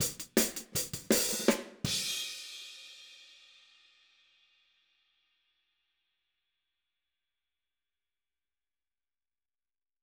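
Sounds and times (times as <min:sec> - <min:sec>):
outro hi-hat drums: 0:00.0 - 0:02.9.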